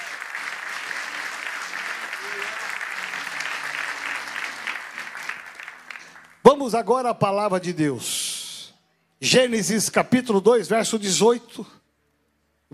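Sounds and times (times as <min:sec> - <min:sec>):
audience applause: 0:00.0 - 0:06.4
speech: 0:06.6 - 0:08.3, 0:09.2 - 0:11.8.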